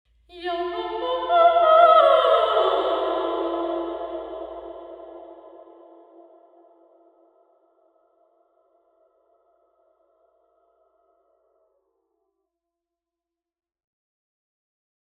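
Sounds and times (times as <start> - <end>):
people singing in a sports centre: 0.4 - 6.3.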